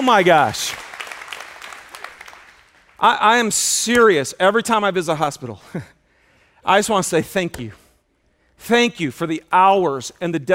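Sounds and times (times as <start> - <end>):
speech: 0.0 - 0.8, 3.0 - 6.0, 6.6 - 7.8, 8.6 - 10.5
crowd applauding: 0.0 - 3.2.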